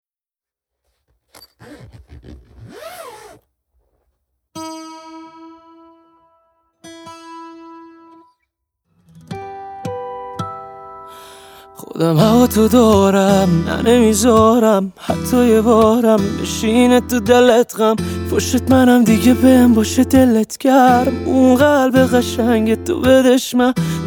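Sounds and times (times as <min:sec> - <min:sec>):
guitar: 0:04.6 - 0:24.0.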